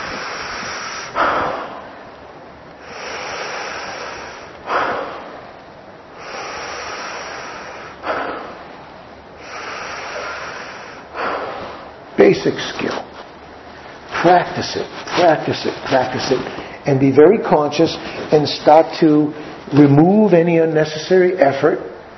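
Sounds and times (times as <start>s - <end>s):
forceful released exhales in a breathing exercise: 0.0s - 2.0s, 2.8s - 5.4s, 6.1s - 8.7s, 9.4s - 12.0s
speech: 12.3s - 13.0s, 14.2s - 21.9s.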